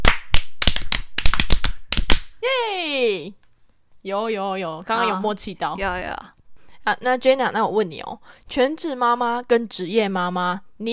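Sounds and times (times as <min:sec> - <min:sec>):
rhythmic hand clapping: 0:00.0 - 0:02.4
speech: 0:02.4 - 0:03.4, 0:04.0 - 0:10.9.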